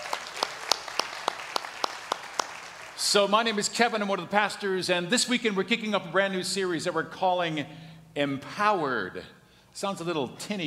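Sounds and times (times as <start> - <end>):
congregation clapping during a Vineyard church service: 0.0 - 3.4
speech: 3.1 - 10.6.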